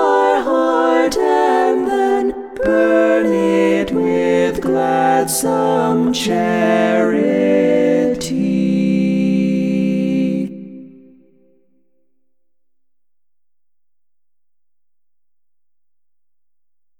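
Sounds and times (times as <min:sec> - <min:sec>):
polyphonic top voices: 0:00.0 - 0:11.1.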